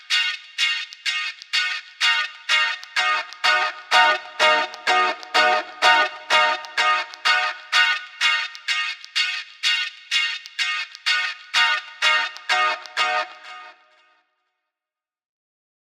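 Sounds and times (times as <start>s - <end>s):
frozen guitar tone: 0.0s - 14.1s.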